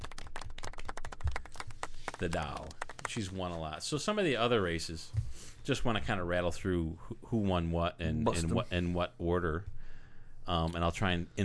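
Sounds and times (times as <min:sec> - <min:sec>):
golf clap: 0:00.0 - 0:03.3
speech: 0:02.2 - 0:09.7, 0:10.4 - 0:11.4.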